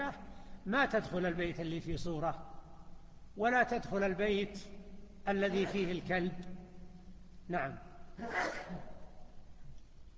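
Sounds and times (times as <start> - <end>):
speech: 0.2 - 2.6, 3.4 - 6.6, 7.5 - 8.9
sneeze: 8.2 - 9.1.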